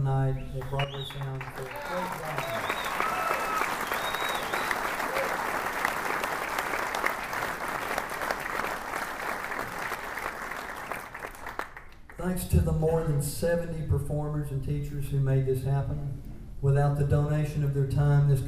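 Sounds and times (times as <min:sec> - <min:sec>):
speech: 0:00.1 - 0:03.4, 0:12.2 - 0:18.4
audience applause: 0:00.6 - 0:12.1
faint cheers: 0:01.1 - 0:05.7.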